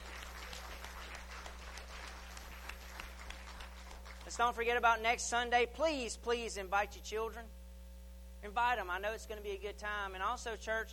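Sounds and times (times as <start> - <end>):
audience clapping hands: 0.0 - 4.6
speech: 4.3 - 7.6, 8.4 - 10.9.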